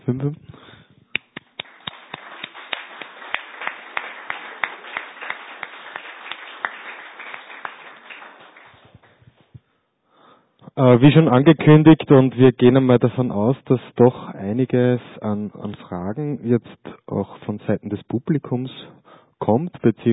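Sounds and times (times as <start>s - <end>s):
speech: 0.1s - 0.6s, 10.8s - 20.1s
group of people clapping: 1.2s - 9.6s.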